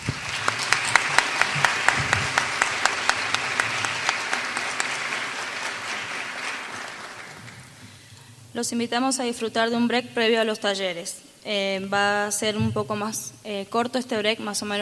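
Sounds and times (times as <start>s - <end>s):
conference audience clapping: 0.0s - 8.1s
speech: 8.6s - 14.8s.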